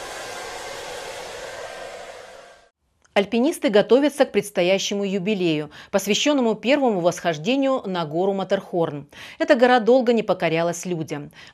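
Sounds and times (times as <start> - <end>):
hair dryer drying a dog: 0.0 - 2.7
speech: 3.2 - 11.5.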